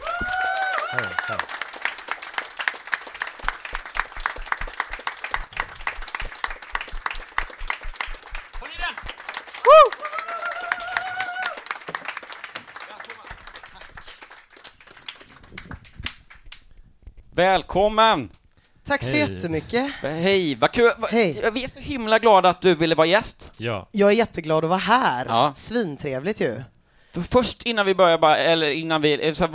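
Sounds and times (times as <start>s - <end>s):
crowd whooping and cheering: 0.0s - 1.7s, 9.5s - 11.8s
audience applause welcoming a guest: 0.0s - 16.4s
speech: 0.9s - 1.6s, 17.4s - 29.5s.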